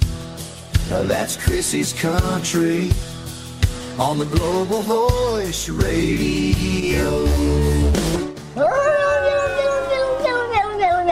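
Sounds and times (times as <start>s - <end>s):
speech: 0.9s - 3.2s, 4.0s - 7.9s
cat howling: 8.6s - 10.6s.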